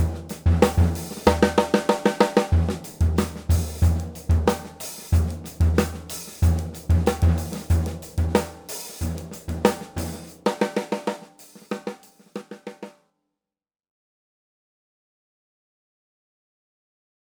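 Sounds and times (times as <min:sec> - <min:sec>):
Ludwig 6.5x14 drum: 0:00.0 - 0:12.9.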